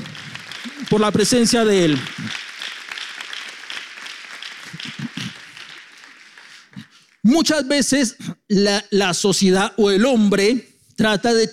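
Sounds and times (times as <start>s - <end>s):
audience applause: 0.0s - 7.2s
speech: 0.9s - 2.4s, 7.4s - 11.5s.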